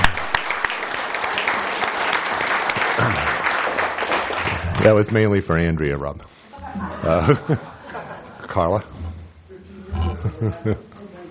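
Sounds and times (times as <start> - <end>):
audience applause: 0.0 - 5.2
speech: 4.9 - 7.8, 8.5 - 9.0, 10.4 - 10.9
laughter: 6.6 - 11.1.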